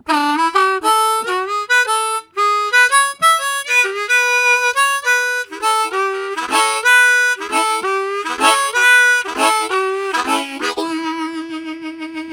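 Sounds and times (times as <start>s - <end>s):
harmonica rising and falling: 0.0s - 12.3s.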